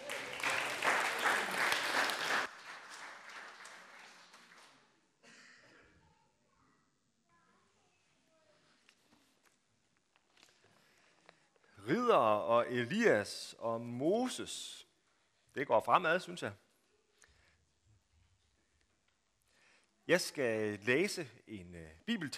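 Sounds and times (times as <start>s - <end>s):
audience applause for a guest at a Fastelavn carnival party: 0.0s - 4.8s
speech: 12.1s - 14.8s, 15.6s - 16.6s, 20.1s - 22.3s.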